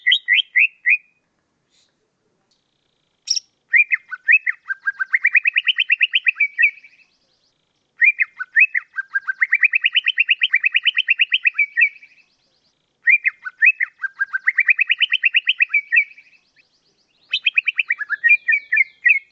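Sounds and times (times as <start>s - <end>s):
bird chirping and trilling: 0.0s - 1.2s, 2.8s - 19.2s.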